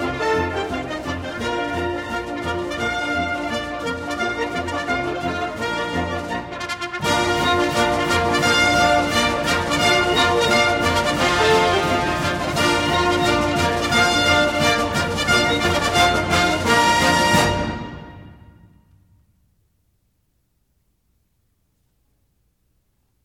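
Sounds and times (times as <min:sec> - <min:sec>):
wind ensemble playing: 0:00.0 - 0:18.5.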